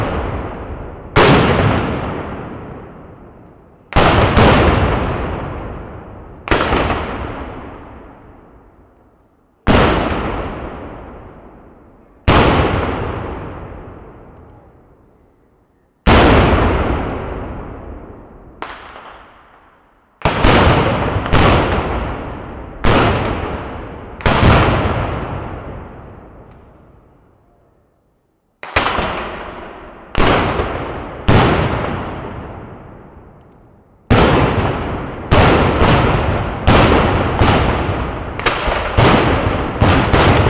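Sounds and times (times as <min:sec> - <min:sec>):
cannons firing in battle: 0:00.0 - 0:03.1, 0:03.9 - 0:08.2, 0:09.7 - 0:11.3, 0:12.3 - 0:14.2, 0:16.1 - 0:18.0, 0:20.2 - 0:26.5, 0:28.6 - 0:33.0, 0:34.1 - 0:40.4.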